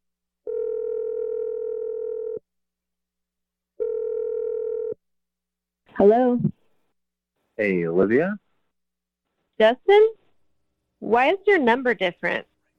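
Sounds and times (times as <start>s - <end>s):
telephone ringing tone: 0.5s - 2.4s, 3.8s - 5.0s
speech: 6.0s - 6.5s, 7.6s - 8.4s, 9.6s - 10.2s, 11.1s - 12.5s.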